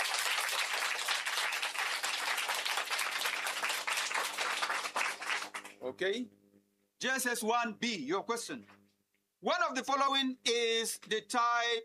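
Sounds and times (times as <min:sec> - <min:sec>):
classroom round of applause: 0:00.0 - 0:05.8
speech: 0:05.8 - 0:06.4, 0:07.0 - 0:08.8, 0:09.4 - 0:11.8.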